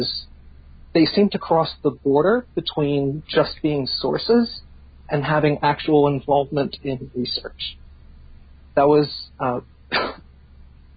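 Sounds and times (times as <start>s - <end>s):
speech: 0.0s - 0.2s, 1.0s - 7.8s, 8.8s - 10.2s
cough: 9.9s - 10.2s.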